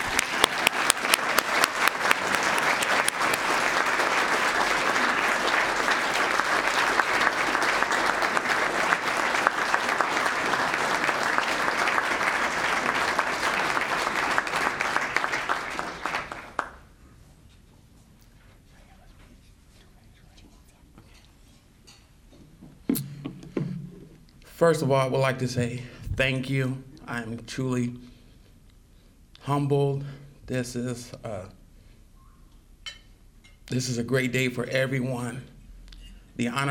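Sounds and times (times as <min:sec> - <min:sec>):
audience applause: 0:00.0 - 0:16.9
speech: 0:24.6 - 0:28.1, 0:29.5 - 0:31.6, 0:33.7 - 0:35.5, 0:36.4 - 0:36.7.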